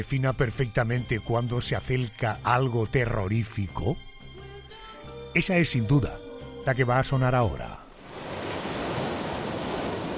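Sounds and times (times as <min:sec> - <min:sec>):
speech: 0:00.0 - 0:04.1, 0:05.3 - 0:07.8
ocean waves washing onto a beach: 0:07.9 - 0:10.1.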